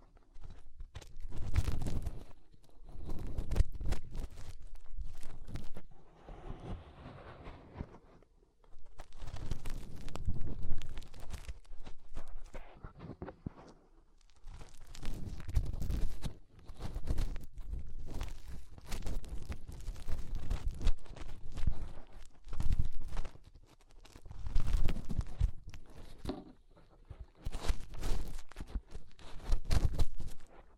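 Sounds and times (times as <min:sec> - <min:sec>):
fingers rubbing and scratching inside an ear: 0:00.0 - 0:08.0, 0:08.8 - 0:30.7.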